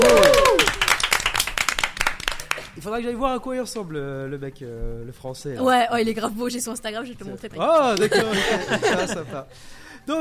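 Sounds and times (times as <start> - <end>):
high whoops: 0.0 - 1.0
small group applauding in studio: 0.0 - 2.9
speech: 2.8 - 10.2
laughter: 7.9 - 9.6.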